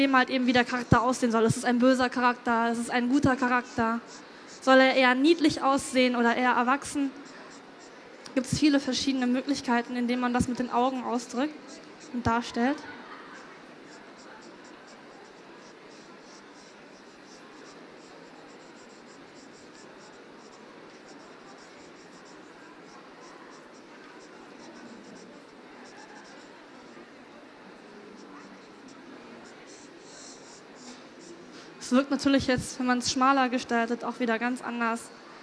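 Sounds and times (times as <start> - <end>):
speech: 0.0 - 7.4, 8.4 - 13.0, 32.1 - 35.2
pen or pencil drawing an eye on paper: 2.8 - 7.9, 13.4 - 27.0, 28.2 - 32.0.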